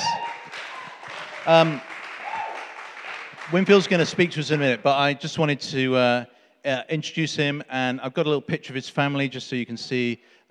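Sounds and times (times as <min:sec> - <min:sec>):
voiced cheer or whoop: 0:00.0 - 0:04.0
crowd clapping: 0:00.0 - 0:04.8
speech: 0:01.4 - 0:01.9, 0:03.5 - 0:10.4.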